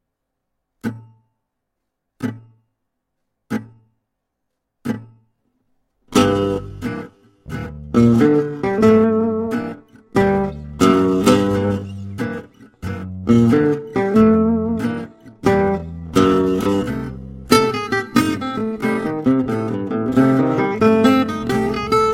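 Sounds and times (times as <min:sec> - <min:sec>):
minor blues music: 0:04.8 - 0:05.3, 0:05.9 - 0:22.1.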